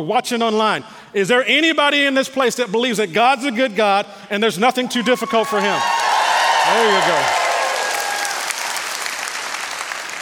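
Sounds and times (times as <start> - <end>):
speech: 0.0 - 7.4
audience clapping: 5.3 - 10.2.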